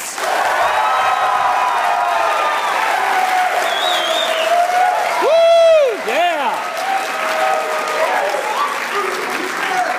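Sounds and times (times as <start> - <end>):
audience applause: 0.0 - 9.9.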